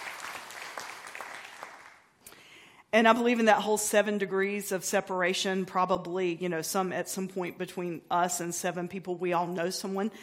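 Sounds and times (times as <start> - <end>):
audience clapping: 0.0 - 2.2
speech: 2.9 - 10.2.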